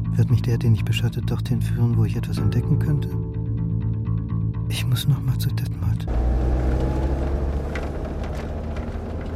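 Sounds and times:
speech: 0.2 - 3.3, 4.7 - 6.8
car engine idling: 6.1 - 9.3.

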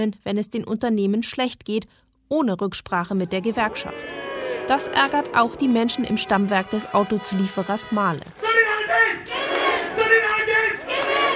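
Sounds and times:
speech: 0.0 - 9.6
crowd of workers shouting at union rally: 3.2 - 11.3.

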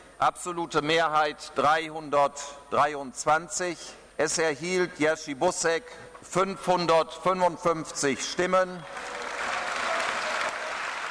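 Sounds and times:
speech: 0.2 - 9.2
sustained applause in the European Parliament for its newly elected president: 8.9 - 11.0.

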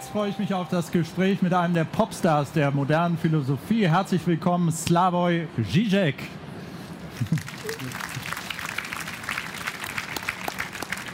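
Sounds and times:
speech: 0.1 - 6.4, 7.2 - 8.0
hands clapping: 7.2 - 11.1.

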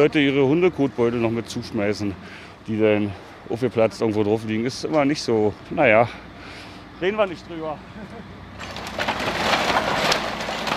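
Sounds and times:
speech: 0.0 - 8.4
wood load dumped into sorting machine: 8.6 - 10.7.

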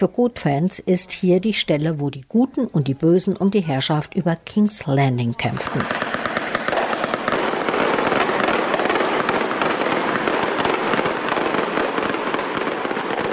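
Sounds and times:
speech: 0.0 - 6.3
fireworks exploding: 5.3 - 13.3.

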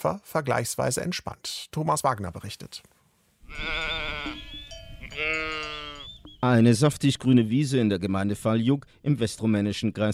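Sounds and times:
speech: 0.0 - 4.4, 6.4 - 10.1
sheep flock bleating: 3.4 - 6.2.

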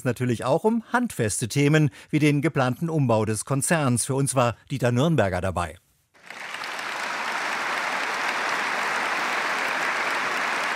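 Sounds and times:
speech: 0.0 - 6.4
shareholders applauding at general meeting: 6.2 - 10.7.

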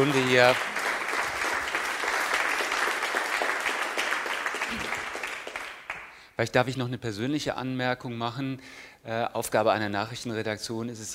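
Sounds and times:
speech: 0.0 - 0.7, 6.4 - 11.1
audience applause: 0.0 - 6.2.

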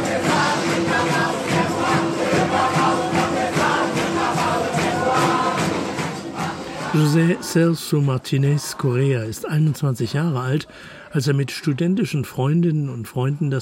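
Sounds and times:
large crowd applauding: 0.0 - 9.1
speech: 7.0 - 13.5.

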